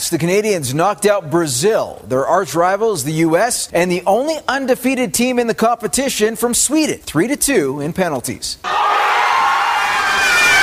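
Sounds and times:
speech: 0.0s - 9.1s
large crowd of soccer fans cheering and screaming in celebration: 8.6s - 10.6s.

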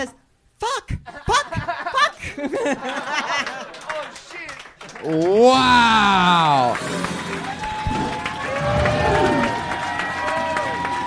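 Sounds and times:
speech: 0.0s - 1.4s, 2.4s - 4.1s, 5.0s - 7.0s
laughter: 1.1s - 4.2s
audience and panel clapping in a standing ovation at a live comedy show: 2.7s - 11.0s
whoops and cheering: 5.3s - 11.0s.

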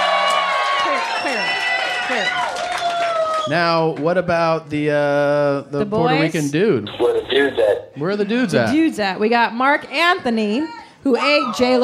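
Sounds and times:
audience clapping: 0.0s - 4.1s
speech: 3.5s - 11.8s.

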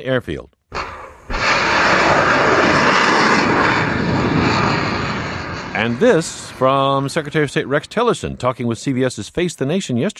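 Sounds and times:
speech: 0.0s - 0.6s, 5.8s - 10.1s
missile launch from USS Porter in the Mediterranean Sea: 0.7s - 8.2s.

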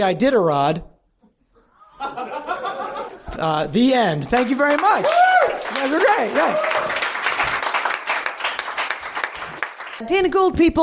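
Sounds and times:
speech: 0.0s - 0.9s, 2.0s - 2.8s, 3.4s - 6.8s, 10.0s - 10.8s
laughter: 1.6s - 3.4s
applause: 4.3s - 10.0s.

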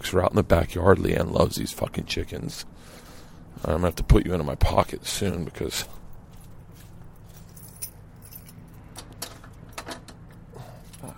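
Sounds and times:
speech: 0.0s - 3.0s, 3.6s - 6.0s
steady low hum: 0.0s - 11.1s
keys jangling: 7.2s - 11.1s.

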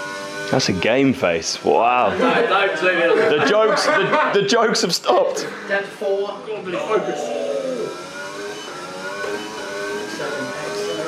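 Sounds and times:
speech: 0.5s - 7.4s
laughter: 2.1s - 5.9s
car engine revving while accelerating out of a pit stop: 6.8s - 11.0s.

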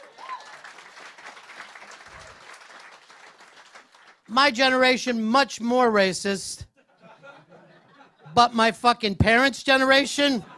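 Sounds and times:
audience applause: 0.0s - 4.3s
speech: 4.3s - 6.7s, 8.4s - 10.5s
laughter: 6.8s - 8.4s, 10.2s - 10.5s.

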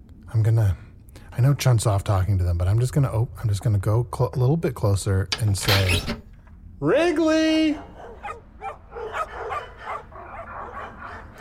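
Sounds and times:
speech: 0.3s - 7.9s
several dogs barking: 7.7s - 11.3s.

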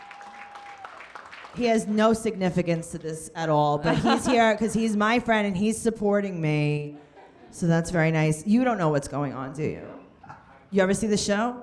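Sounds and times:
audience clapping: 0.0s - 2.0s
speech: 1.5s - 10.0s, 10.7s - 11.6s
laughter: 3.8s - 4.7s.

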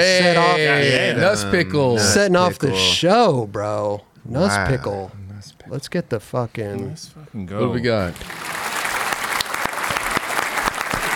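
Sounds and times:
speech: 0.0s - 8.6s
audience applause: 8.1s - 11.1s.

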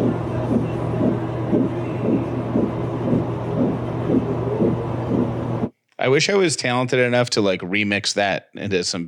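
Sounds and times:
fetal heartbeat on ultrasound monitor: 0.0s - 5.7s
low electronic hum: 0.0s - 5.8s
speech: 6.0s - 9.0s.

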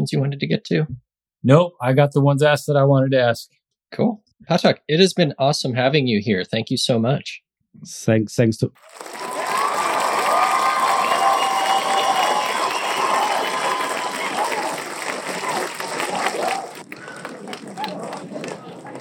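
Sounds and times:
speech: 0.0s - 9.4s
crowd applause and cheering: 8.8s - 18.9s.

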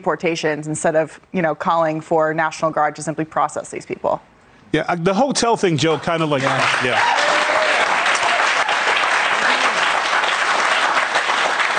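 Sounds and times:
speech: 0.0s - 7.3s
audience clapping: 6.0s - 11.7s.

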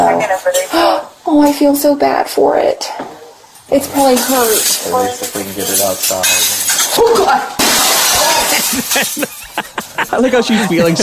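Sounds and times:
speech: 0.3s - 7.8s, 8.6s - 11.0s
glass window shattering as a turkey crashes through it: 3.9s - 10.0s
laughter: 8.2s - 11.0s.

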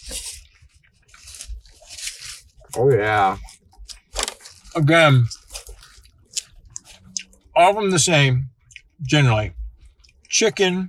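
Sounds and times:
biting into crunchy fried chicken sandwich: 0.0s - 7.5s
person chewing: 0.0s - 7.6s, 8.6s - 9.0s, 9.8s - 10.3s
speech: 2.8s - 3.5s, 4.8s - 5.4s, 7.6s - 9.6s, 10.3s - 10.8s.

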